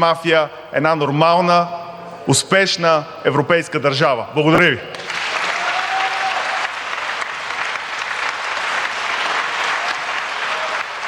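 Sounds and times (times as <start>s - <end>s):
speech: 0.0s - 5.2s
crowd applause: 4.9s - 11.0s.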